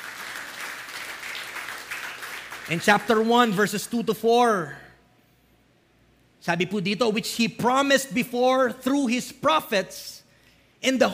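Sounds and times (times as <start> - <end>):
church congregation applauding during a service: 0.0 - 3.6
speech: 2.7 - 4.8, 6.4 - 10.2, 10.8 - 11.1.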